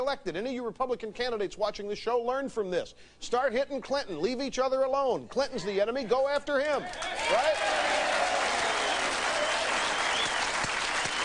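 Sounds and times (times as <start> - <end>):
speech: 0.0 - 8.2
talk show audience applause for a political line: 6.9 - 11.2.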